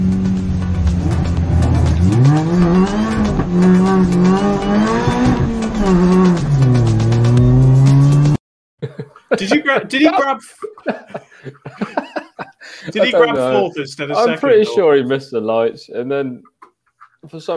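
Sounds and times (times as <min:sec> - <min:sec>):
racing car engine at a race start: 0:00.0 - 0:08.4
laughter: 0:08.8 - 0:14.8
speech: 0:09.7 - 0:11.2, 0:13.0 - 0:16.5, 0:17.2 - 0:17.5.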